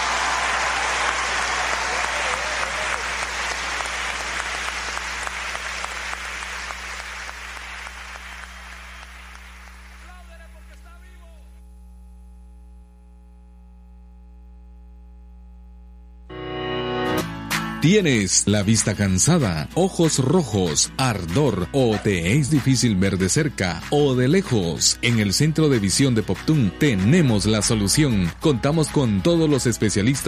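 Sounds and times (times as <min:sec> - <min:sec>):
audience applause: 0:00.0 - 0:11.1
low steady hum: 0:04.2 - 0:16.3
speech: 0:17.8 - 0:30.2.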